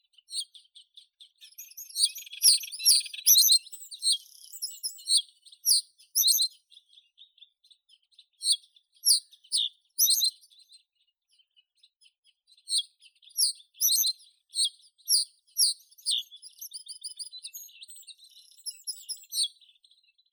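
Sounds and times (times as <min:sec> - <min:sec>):
common reed bunting Emberiza schoeniclus: 0:01.4 - 0:07.1, 0:08.4 - 0:10.7, 0:12.7 - 0:19.9.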